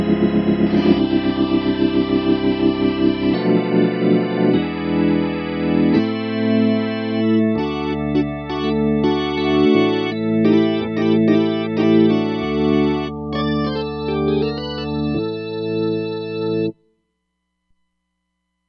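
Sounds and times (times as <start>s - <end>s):
synthesizer organ on Roland Fantom XR: 0.0s - 16.8s.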